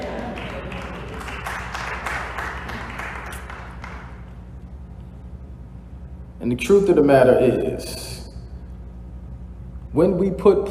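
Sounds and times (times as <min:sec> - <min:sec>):
audience clapping: 0:00.0 - 0:04.4
speech: 0:06.4 - 0:08.2, 0:10.0 - 0:10.6.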